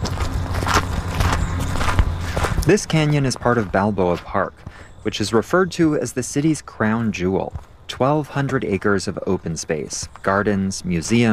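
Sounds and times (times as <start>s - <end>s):
steady low rumble: 0.0s - 5.0s
footsteps on a dirt hiking trail in an urban canyon in San Diego's Balboa Park: 0.0s - 11.3s
speech: 2.6s - 11.3s.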